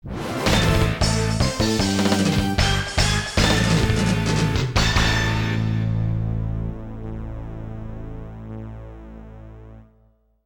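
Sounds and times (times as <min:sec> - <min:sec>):
victory jingle: 0:00.5 - 0:05.9.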